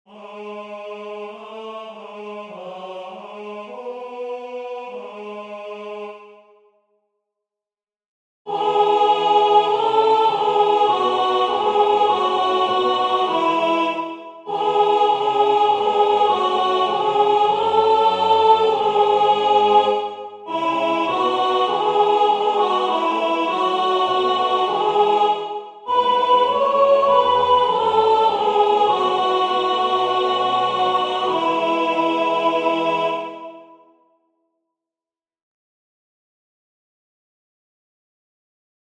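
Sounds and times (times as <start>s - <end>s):
soprano singing: 8.5s - 33.8s.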